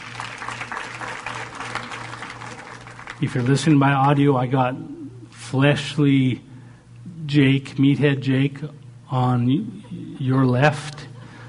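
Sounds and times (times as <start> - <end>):
audience clapping: 0.0 - 4.2
low hum: 0.0 - 11.4
speech: 3.2 - 6.5, 7.3 - 11.1.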